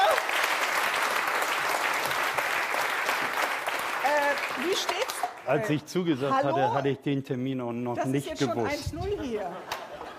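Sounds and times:
audience applause: 0.0s - 5.5s
speech: 4.8s - 10.1s.

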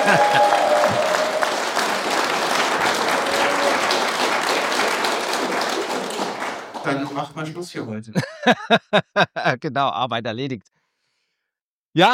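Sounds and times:
laughter: 0.0s - 4.5s, 8.1s - 9.6s
audience applauding and cheering: 0.0s - 7.4s
speech: 6.9s - 10.7s, 11.9s - 12.1s.

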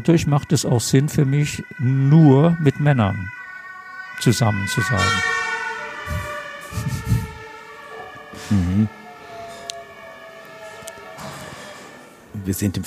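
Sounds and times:
speech: 0.0s - 3.4s, 4.2s - 5.4s, 8.5s - 9.0s, 12.5s - 12.8s
emergency vehicle siren passing outside: 0.0s - 12.8s
voice murmuring: 0.5s - 3.3s, 6.1s - 7.4s, 8.4s - 9.0s
laughter: 6.1s - 7.4s.

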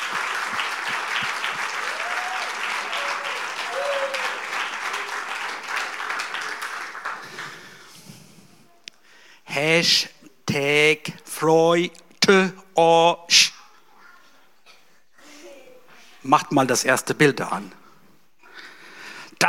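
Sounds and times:
audience applause for children: 0.0s - 7.9s
speech: 9.6s - 13.5s, 16.3s - 17.8s.

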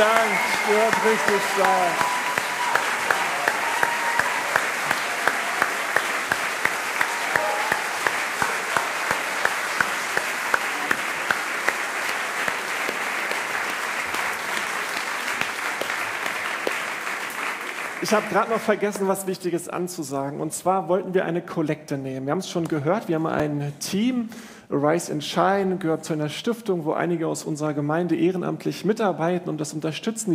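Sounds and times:
speech: 0.0s - 2.1s, 18.1s - 30.3s
applause for the singers at a church service: 0.0s - 19.2s.

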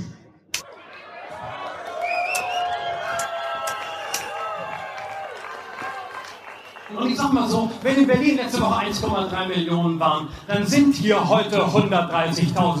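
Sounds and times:
voices cheering: 0.6s - 8.7s
crowd applauding: 1.0s - 8.9s
shrill whistles: 2.0s - 4.6s, 6.1s - 6.9s
speech: 7.0s - 12.7s.

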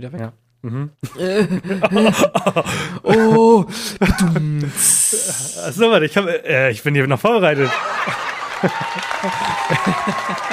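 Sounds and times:
speech: 0.0s - 10.5s
laughter: 1.2s - 4.5s, 7.4s - 10.5s
applause for a joke: 7.8s - 10.5s.

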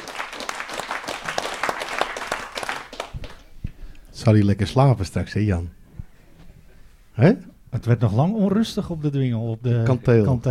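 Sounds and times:
crowd applause: 0.0s - 3.4s
speech: 4.2s - 5.8s, 7.2s - 10.4s.

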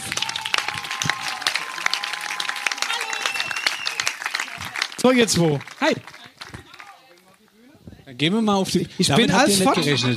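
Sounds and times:
audience applause: 0.0s - 7.4s
speech: 5.0s - 6.1s, 8.2s - 10.1s
laughter: 9.0s - 10.1s.

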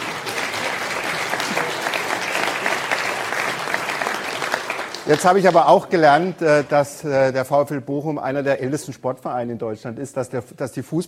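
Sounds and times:
audience clapping: 0.0s - 6.9s
speech: 5.1s - 11.0s.

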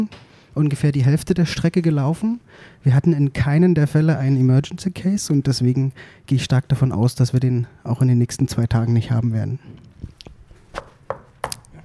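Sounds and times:
speech: 0.0s - 9.8s
knocking: 10.8s - 11.6s.

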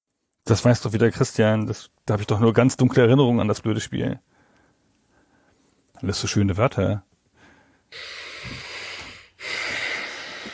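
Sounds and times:
speech: 0.5s - 4.3s, 6.0s - 7.1s, 7.9s - 8.6s
strained exhale: 7.4s - 10.5s.

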